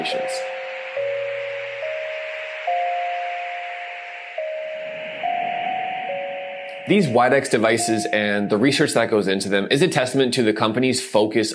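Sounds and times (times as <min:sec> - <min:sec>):
speech: 0:00.0 - 0:00.4, 0:06.9 - 0:11.5
fractal tinnitus therapy chime-like tones: 0:00.0 - 0:09.2
airy hiss: 0:00.0 - 0:10.2.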